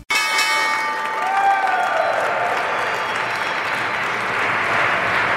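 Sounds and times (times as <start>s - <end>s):
New York Stock Exchange opening bell clanging: 0.1s - 1.3s
crowd applauding and cheering: 0.7s - 5.3s.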